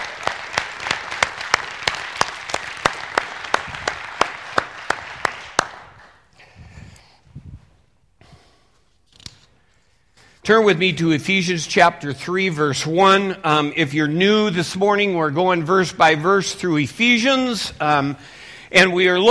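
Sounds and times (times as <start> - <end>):
audience clapping hands in unison rhythm: 0.0 - 6.3
speech: 10.5 - 19.2.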